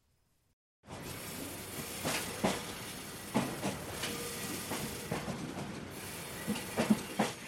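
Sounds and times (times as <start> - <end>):
small three-car sightseeing train rolling along its track: 0.8 - 7.4
train wheels and cars clacking and knocking: 1.8 - 7.4.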